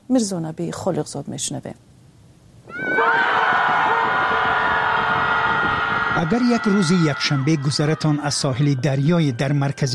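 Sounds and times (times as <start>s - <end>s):
speech: 0.1s - 1.9s, 6.3s - 9.9s
group of people shouting together: 2.7s - 8.1s.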